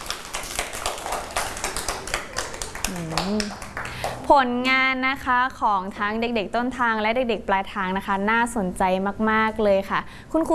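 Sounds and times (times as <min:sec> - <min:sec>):
hands clapping: 0:00.0 - 0:04.3
speech: 0:02.9 - 0:03.7, 0:04.3 - 0:10.5.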